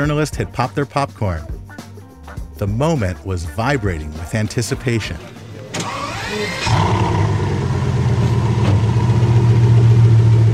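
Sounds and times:
speech: 0:00.0 - 0:01.5, 0:02.6 - 0:05.4
black and red Bugatti Veyron coupe streaking by: 0:05.2 - 0:10.5.

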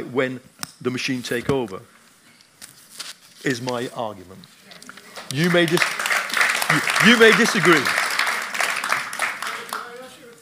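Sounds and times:
speech: 0:00.1 - 0:02.0, 0:03.4 - 0:04.6, 0:05.3 - 0:06.0, 0:06.7 - 0:08.0
a few people applauding: 0:05.1 - 0:10.4.

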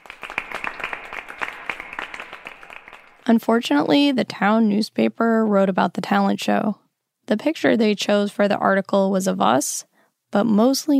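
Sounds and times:
thin scattered applause from a small crowd: 0:00.0 - 0:03.3
speech: 0:03.3 - 0:10.9.

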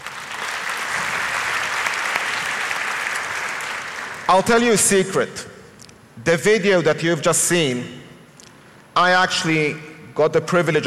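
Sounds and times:
round of applause: 0:00.0 - 0:04.3
speech: 0:04.3 - 0:05.4, 0:06.2 - 0:08.0, 0:09.0 - 0:10.8.

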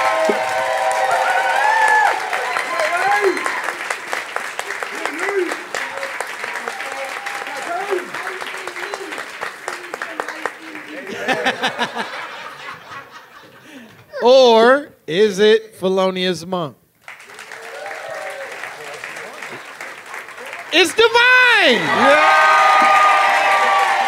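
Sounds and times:
live comedy audience applause and cheering in Chicago: 0:00.0 - 0:12.7, 0:17.0 - 0:24.0
audience laughing: 0:10.9 - 0:13.9
speech: 0:15.2 - 0:16.8, 0:20.7 - 0:22.6.

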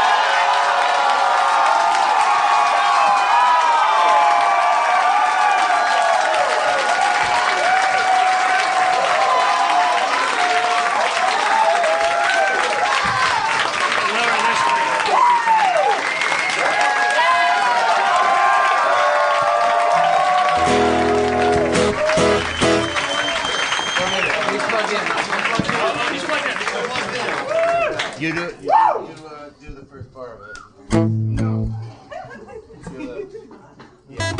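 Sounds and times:
crowd cheering with whoops and shouts: 0:00.0 - 0:24.7, 0:27.4 - 0:29.1
large crowd clapping: 0:00.0 - 0:28.5
laughter: 0:31.8 - 0:34.3.

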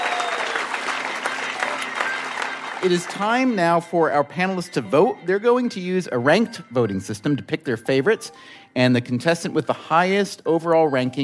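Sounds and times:
audience applauding: 0:00.0 - 0:04.0
speech: 0:02.8 - 0:11.2.

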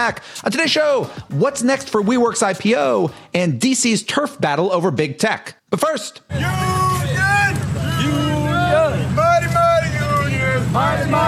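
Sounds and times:
speech: 0:00.0 - 0:06.8
striking General Motors auto workers shouting in protest: 0:06.3 - 0:11.2.

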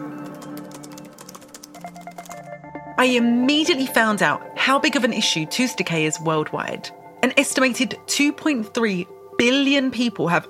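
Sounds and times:
typing on a computer keyboard for a Google search: 0:00.0 - 0:02.6
speech: 0:03.0 - 0:10.4.

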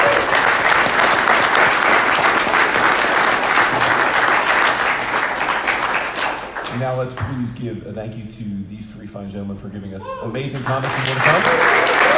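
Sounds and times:
audience applause: 0:00.0 - 0:06.9, 0:10.6 - 0:12.1
speech: 0:07.0 - 0:11.8.

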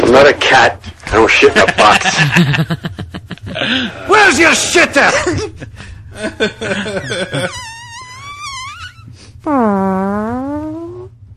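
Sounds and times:
speech: 0:00.1 - 0:07.7, 0:09.4 - 0:10.8
laughter: 0:01.4 - 0:04.0, 0:05.0 - 0:07.7
farts: 0:07.1 - 0:11.2.

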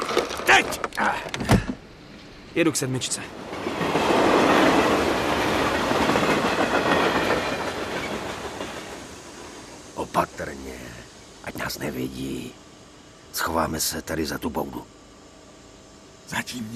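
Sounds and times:
speech: 0:00.6 - 0:01.5, 0:02.6 - 0:03.5, 0:11.7 - 0:12.6, 0:13.4 - 0:15.0, 0:16.3 - 0:16.7
railway wagon rolling on tracks: 0:01.8 - 0:13.9.

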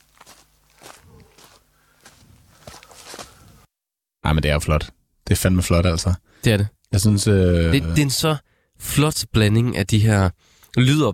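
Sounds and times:
running footsteps on a hard surface: 0:00.0 - 0:03.4
speech: 0:04.3 - 0:11.1.

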